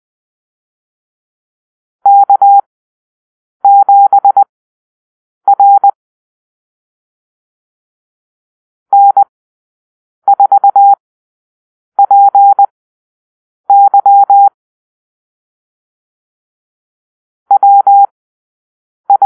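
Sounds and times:
morse code call-sign drill: 0:02.1 - 0:02.6, 0:03.7 - 0:04.5, 0:05.5 - 0:06.0, 0:09.0 - 0:09.2, 0:10.3 - 0:11.0, 0:12.0 - 0:12.7, 0:13.7 - 0:14.6, 0:17.5 - 0:18.1, 0:19.1 - 0:19.2.

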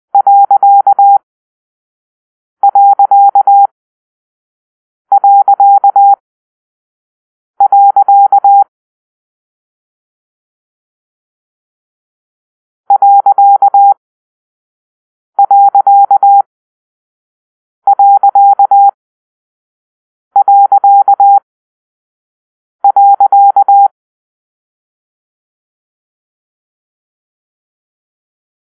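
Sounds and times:
morse code beeps for a period: 0:00.2 - 0:01.2, 0:02.6 - 0:03.7, 0:05.1 - 0:06.2, 0:07.6 - 0:08.7, 0:12.9 - 0:14.0, 0:15.4 - 0:16.5, 0:17.9 - 0:19.0, 0:20.4 - 0:21.4, 0:22.8 - 0:23.9.

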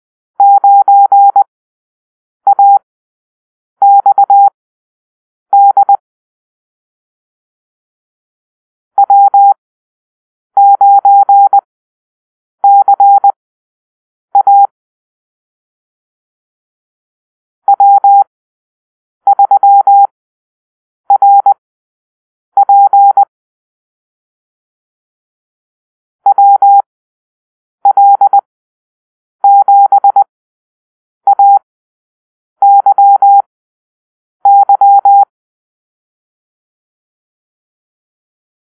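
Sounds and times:
morse code call-sign drill: 0:00.4 - 0:01.5, 0:02.5 - 0:02.8, 0:03.8 - 0:04.5, 0:05.6 - 0:06.0, 0:09.0 - 0:09.5, 0:10.6 - 0:11.6, 0:12.6 - 0:13.4, 0:14.4 - 0:14.7, 0:17.7 - 0:18.3, 0:19.3 - 0:20.1, 0:21.1 - 0:21.6, 0:22.6 - 0:23.3, 0:26.3 - 0:26.8, 0:27.8 - 0:28.4, 0:29.4 - 0:30.3, 0:31.3 - 0:31.6, 0:32.6 - 0:33.5, 0:34.5 - 0:35.3.

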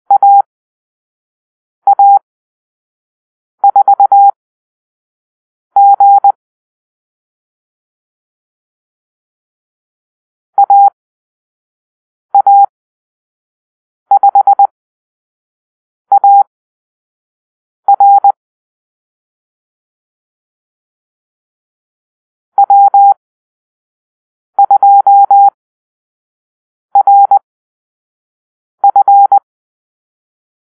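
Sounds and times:
morse code call-sign beeps: 0:00.1 - 0:00.5, 0:01.9 - 0:02.2, 0:03.7 - 0:04.4, 0:05.8 - 0:06.4, 0:10.6 - 0:11.0, 0:12.4 - 0:12.7, 0:14.1 - 0:14.7, 0:16.1 - 0:16.5, 0:17.9 - 0:18.4, 0:22.6 - 0:23.2, 0:24.6 - 0:25.6, 0:27.0 - 0:27.4, 0:28.8 - 0:29.4.

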